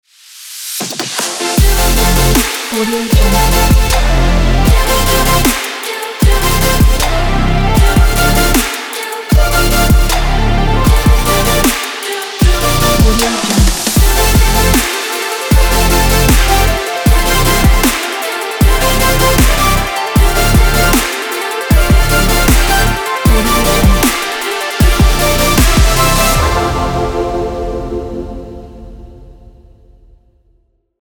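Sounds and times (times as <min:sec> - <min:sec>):
future bass intro opener: 0:01.6 - 0:05.6, 0:06.2 - 0:08.6, 0:09.4 - 0:11.7, 0:12.4 - 0:18.0, 0:18.6 - 0:24.2, 0:24.8 - 0:28.6.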